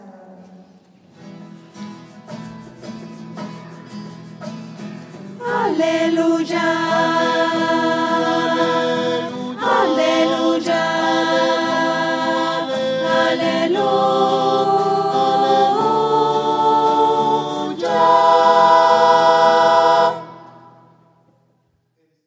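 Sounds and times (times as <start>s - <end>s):
voices: 5.4s - 20.5s.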